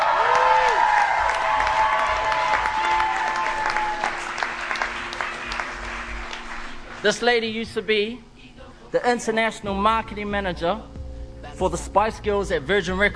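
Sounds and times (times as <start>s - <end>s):
cheers and whistles: 0.0s - 6.8s
crowd applauding: 0.0s - 7.6s
speech: 7.0s - 8.3s, 8.9s - 10.9s, 11.5s - 13.1s.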